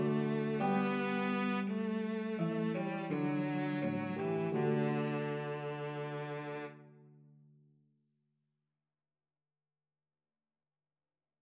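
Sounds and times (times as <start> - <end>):
harp playing a French lullaby: 0.0 - 6.7
cello playing a French lullaby: 0.0 - 7.3.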